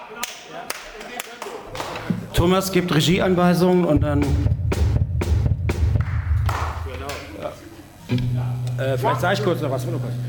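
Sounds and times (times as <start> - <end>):
speech: 0.1 - 4.6, 8.1 - 10.2
hand clapping: 0.2 - 2.1, 5.8 - 7.4.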